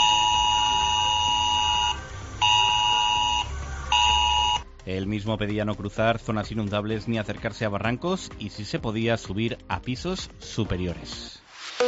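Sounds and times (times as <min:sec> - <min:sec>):
emergency alert tone on mobile phones: 0:00.0 - 0:04.6
speech: 0:04.9 - 0:11.4.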